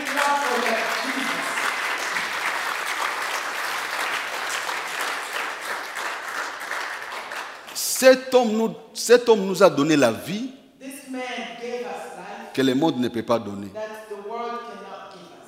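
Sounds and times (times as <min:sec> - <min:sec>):
congregation clapping during a French-language church service: 0:00.0 - 0:08.4
speech: 0:08.0 - 0:10.6, 0:12.6 - 0:13.9.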